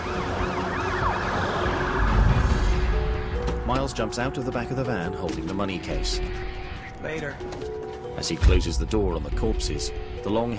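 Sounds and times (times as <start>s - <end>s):
police and FBI convoy sirens wailing: 0.0s - 4.9s
speech: 3.9s - 10.5s.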